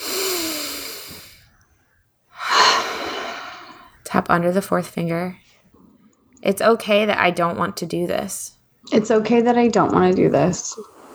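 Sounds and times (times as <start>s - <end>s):
deep breath during a calming tapping exercise: 0.0s - 4.0s, 10.3s - 11.1s
speech: 4.2s - 5.4s, 6.4s - 11.0s.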